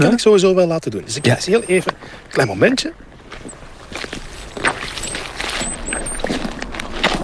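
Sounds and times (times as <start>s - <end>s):
speech: 0.0s - 3.6s
boots walking through soggy peat bog: 3.0s - 7.2s.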